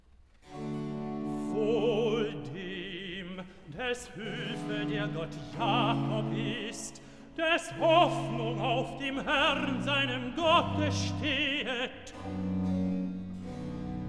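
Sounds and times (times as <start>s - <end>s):
tenor singing recitative: 0.7s - 14.0s.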